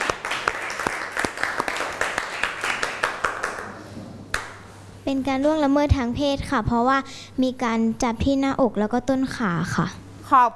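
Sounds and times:
group applauding for student group: 0.0 - 4.6
speech: 5.1 - 10.5.

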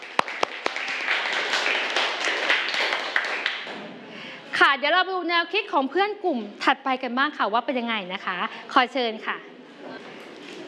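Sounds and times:
group clapping hands: 0.0 - 4.0
speech: 4.7 - 9.5.

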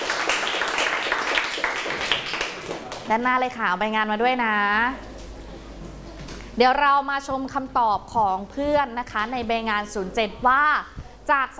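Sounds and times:
classroom clapping for a group: 0.0 - 3.1
speech: 3.1 - 5.1, 6.6 - 11.5.

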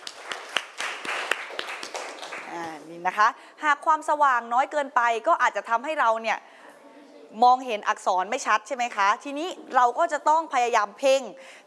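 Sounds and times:
class clapping loudly: 0.0 - 2.7
speech: 3.0 - 6.5, 7.3 - 11.6.

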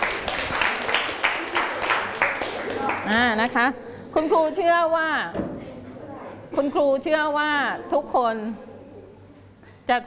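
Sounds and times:
students clapping: 0.0 - 3.2
speech: 3.1 - 5.5, 6.5 - 8.7, 9.9 - 10.0.

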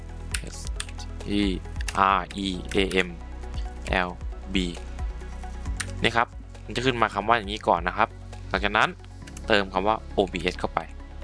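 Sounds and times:
computer keyboard typing during a search entry: 0.4 - 1.0, 1.8 - 3.0, 5.7 - 6.0
speech: 1.3 - 3.3, 3.9 - 4.9, 6.0 - 11.0.

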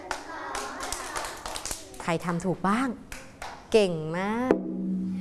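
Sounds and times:
hands clapping: 0.0 - 2.2, 3.1 - 3.6
speech: 2.0 - 3.1, 3.7 - 5.1.

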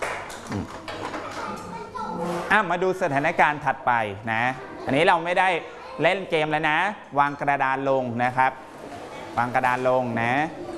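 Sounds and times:
students in a classroom clapping for classmates: 0.0 - 1.5
speech: 0.5 - 0.9, 2.2 - 8.6, 9.4 - 10.6.

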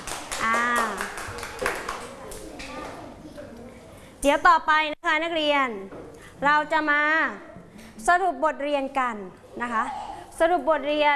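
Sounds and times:
students clapping: 0.0 - 2.8
speech: 4.2 - 11.1.

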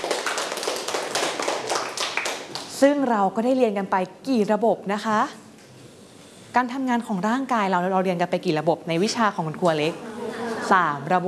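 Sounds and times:
class of students clapping for a classmate: 0.0 - 2.8
speech: 2.8 - 5.4, 6.6 - 10.1, 10.7 - 11.2.

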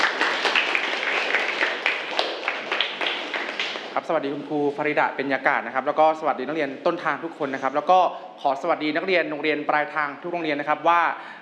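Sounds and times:
students applauding: 0.0 - 4.0
speech: 4.0 - 11.4.

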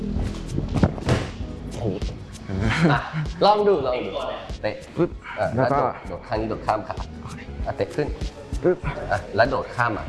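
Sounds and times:
martial arts breakfall onto mat: 0.6 - 1.4
speech: 2.8 - 10.0.

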